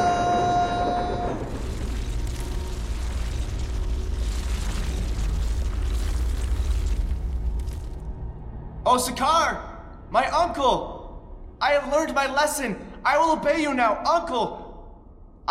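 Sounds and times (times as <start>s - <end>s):
deep steady earth rumble: 0.0s - 8.8s
sharp crackling lightning strike with a sizzling tone: 0.3s - 8.1s
speech: 8.9s - 10.9s, 11.6s - 14.6s.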